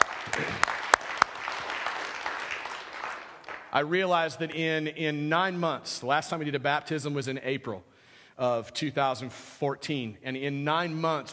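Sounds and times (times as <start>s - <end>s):
audience applause: 0.0s - 3.7s
speech: 3.7s - 11.3s.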